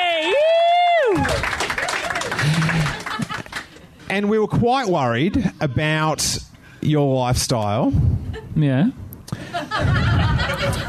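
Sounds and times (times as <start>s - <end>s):
audience applause: 1.0s - 3.8s
laughter: 1.8s - 3.9s, 9.3s - 10.8s
speech: 4.1s - 9.0s.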